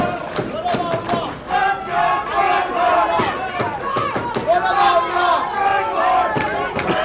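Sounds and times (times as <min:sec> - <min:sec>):
wrestling crowd chanting for the wrestler Strangler: 0:00.0 - 0:07.0.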